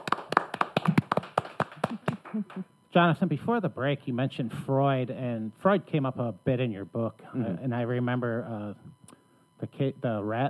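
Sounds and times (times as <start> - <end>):
sparse applause from a small group: 0.0 - 2.5
speech: 2.4 - 8.9, 9.6 - 10.4.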